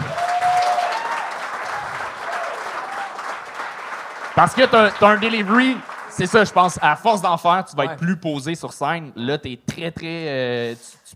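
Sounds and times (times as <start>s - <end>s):
audience applause: 0.0s - 7.7s
speech: 4.4s - 11.1s.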